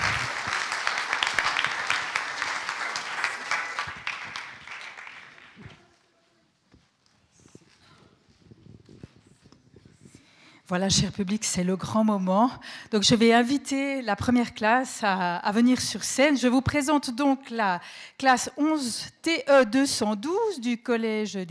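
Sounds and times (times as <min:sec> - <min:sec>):
audience applause: 0:00.0 - 0:05.9
speech: 0:10.7 - 0:21.4.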